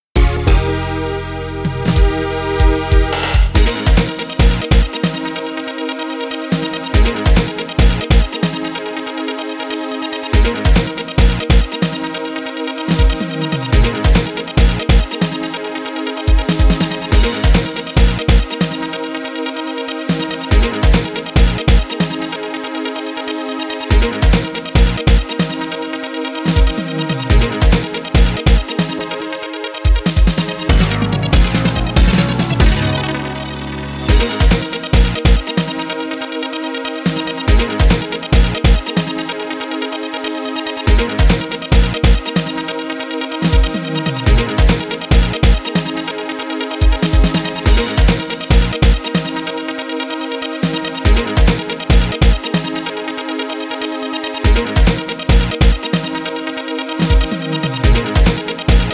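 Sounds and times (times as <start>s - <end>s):
ground rhythm: 0.0s - 58.9s.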